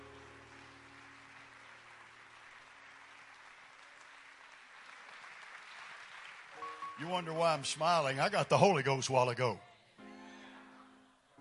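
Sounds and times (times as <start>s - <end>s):
audience hand clapping: 0.0s - 8.8s
speech: 7.0s - 9.7s.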